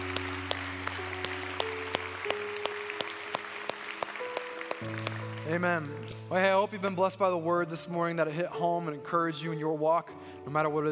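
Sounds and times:
church congregation clapping to welcome new members: 0.0 - 7.1
sustained keyboard chords: 0.0 - 10.9
speech: 4.8 - 10.9.

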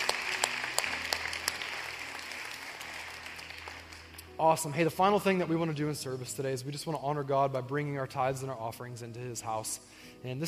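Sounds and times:
church congregation applauding to welcome new members: 0.0 - 5.4
speech: 4.4 - 10.4.

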